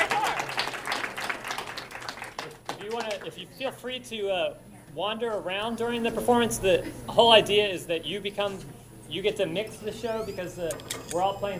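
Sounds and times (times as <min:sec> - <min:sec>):
audience applause welcoming a performing group: 0:00.0 - 0:03.4
speech: 0:02.9 - 0:11.5.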